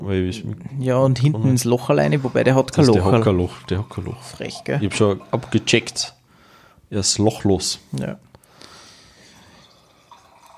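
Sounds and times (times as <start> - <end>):
speech: 0.1 - 6.2, 6.9 - 8.3
drink being poured into a glass: 2.6 - 6.2, 9.4 - 10.5.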